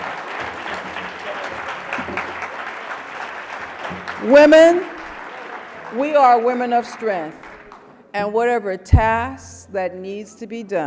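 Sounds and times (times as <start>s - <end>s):
audience applause: 0.0s - 8.0s
speech: 4.2s - 4.9s, 5.9s - 7.4s, 8.2s - 10.8s.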